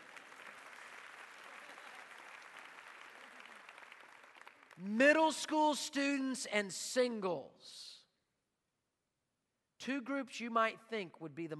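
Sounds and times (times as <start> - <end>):
audience clapping: 0.0 - 5.3
speech: 4.8 - 7.9, 9.8 - 11.5.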